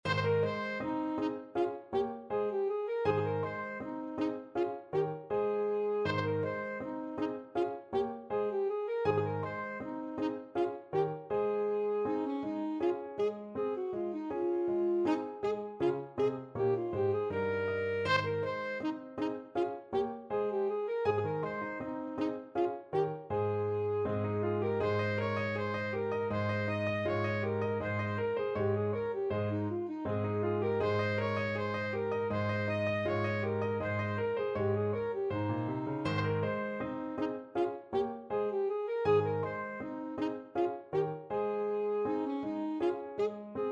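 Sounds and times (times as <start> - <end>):
alto saxophone gavotte: 0.0 - 43.6.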